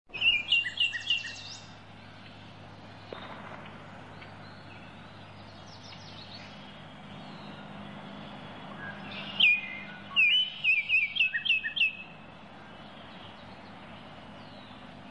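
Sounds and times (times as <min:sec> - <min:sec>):
Baltimore oriole whistled calls: 0:00.1 - 0:01.6, 0:08.6 - 0:12.2.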